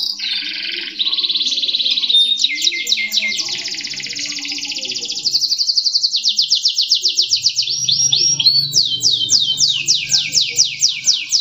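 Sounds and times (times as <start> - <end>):
Atlantic canary singing: 0.0 - 11.3.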